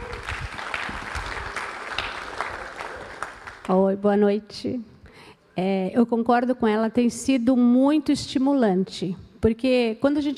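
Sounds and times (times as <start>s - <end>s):
audience applause: 0.0s - 3.7s
speech: 3.7s - 4.9s, 5.6s - 10.3s.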